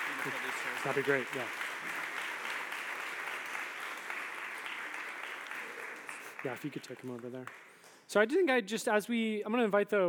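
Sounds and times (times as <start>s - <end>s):
crowd applauding: 0.0s - 7.8s
speech: 0.2s - 1.7s, 6.4s - 10.0s.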